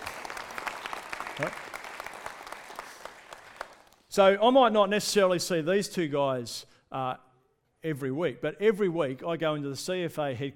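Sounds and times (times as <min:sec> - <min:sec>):
audience applauding: 0:00.0 - 0:04.1
speech: 0:01.4 - 0:01.7, 0:04.2 - 0:07.2, 0:07.8 - 0:10.5.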